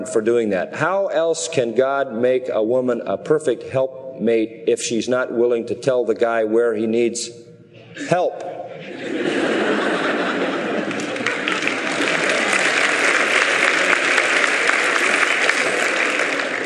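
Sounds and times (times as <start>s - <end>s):
speech: 0.0s - 9.4s
faint laughter: 7.8s - 12.8s
audience clapping: 9.7s - 16.6s.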